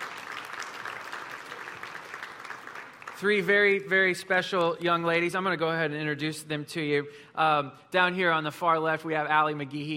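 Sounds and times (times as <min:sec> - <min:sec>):
audience applause: 0:00.0 - 0:03.8
speech: 0:03.2 - 0:09.9.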